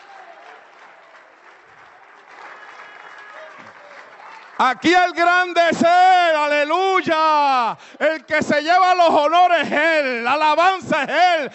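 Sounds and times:
faint voices cheering: 0.0s - 4.8s
audience applause: 0.0s - 5.6s
speech: 4.6s - 11.5s.

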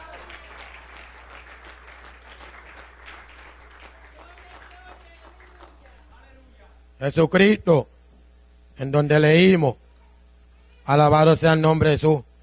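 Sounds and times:
audience applause: 0.0s - 5.9s
speech: 7.0s - 7.9s, 8.8s - 9.8s, 10.9s - 12.3s.

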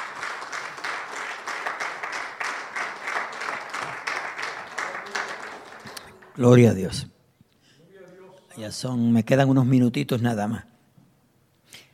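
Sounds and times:
audience applause: 0.0s - 6.8s
speech: 6.4s - 7.1s, 8.6s - 10.7s.

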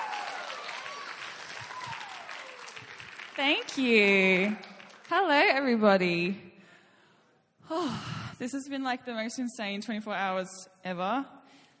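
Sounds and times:
audience at an evening church gathering applauding to welcome a preacher: 0.0s - 5.1s
speech: 3.4s - 6.5s, 7.7s - 11.4s.

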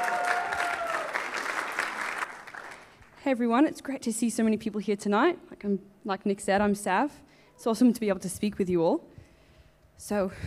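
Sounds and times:
audience applause: 0.0s - 3.0s
speech: 3.2s - 9.1s, 10.0s - 10.4s.

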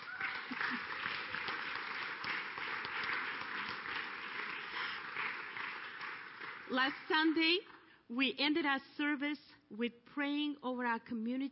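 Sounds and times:
room full of people clapping: 0.0s - 7.8s
speech: 6.7s - 11.5s.

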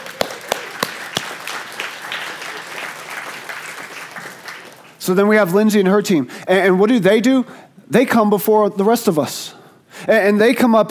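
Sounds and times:
people clapping: 0.0s - 5.4s
speech: 5.0s - 9.5s, 10.1s - 10.8s.

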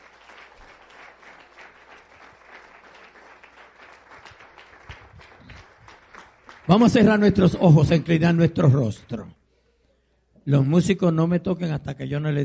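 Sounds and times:
audience applause: 0.0s - 7.4s
speech: 6.7s - 9.4s, 10.4s - 12.4s.

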